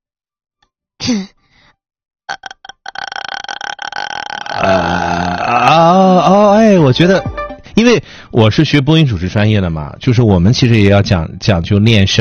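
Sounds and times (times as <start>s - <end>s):
speech: 1.1s - 1.4s, 6.7s - 12.1s
person making vocal fry: 2.3s - 6.4s.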